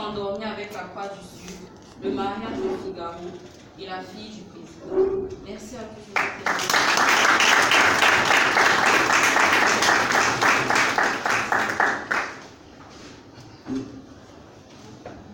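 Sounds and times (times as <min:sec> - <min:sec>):
speech: 0:00.2 - 0:08.6
audience applause: 0:06.2 - 0:12.6.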